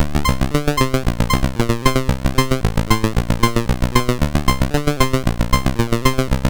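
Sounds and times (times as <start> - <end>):
SID chip MOS6581R4 music: 0.0 - 6.4.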